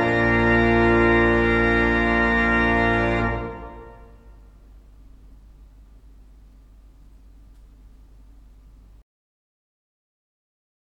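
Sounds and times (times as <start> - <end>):
organ playing a wedding march: 0.0 - 4.5.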